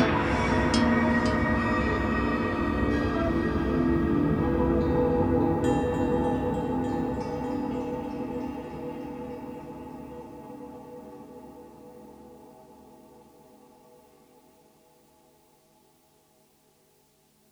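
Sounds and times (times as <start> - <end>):
Alesis Midiverb 2 bloom reverb: 0.0 - 12.0.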